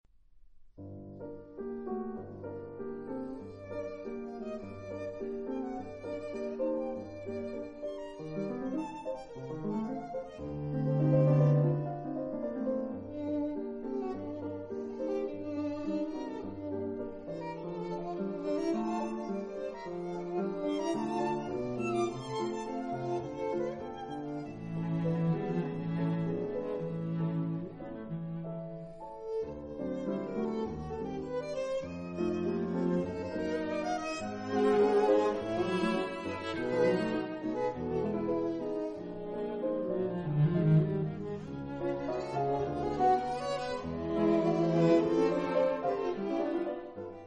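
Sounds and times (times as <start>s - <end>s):
piano quartet: 0.8s - 47.2s.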